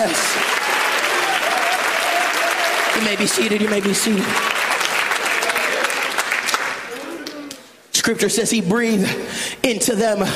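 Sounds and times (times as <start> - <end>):
audience clapping hands: 0.0 - 7.8
speech: 3.0 - 4.7, 8.1 - 10.3.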